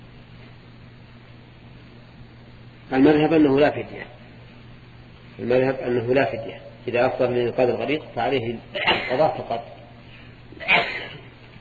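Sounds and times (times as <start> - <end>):
low hum: 0.0 - 11.5
speech: 2.9 - 4.2, 5.4 - 9.8
person sneezing at a religious lesson: 8.8 - 9.2, 10.6 - 11.3.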